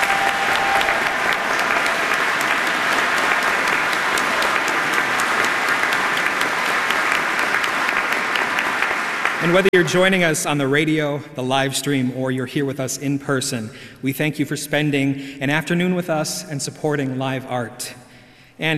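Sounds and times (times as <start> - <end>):
audience applause: 0.0 - 9.8
speech: 9.4 - 18.0.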